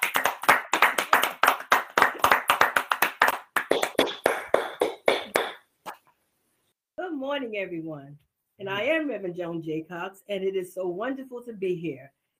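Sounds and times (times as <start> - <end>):
church audience clapping to welcome a speaker: 0.0 - 5.6
speech: 7.2 - 12.2.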